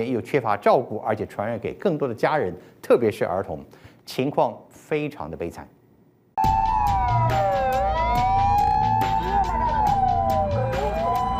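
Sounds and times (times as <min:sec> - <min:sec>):
speech: 0:00.0 - 0:05.8
ambulance siren: 0:06.4 - 0:11.3.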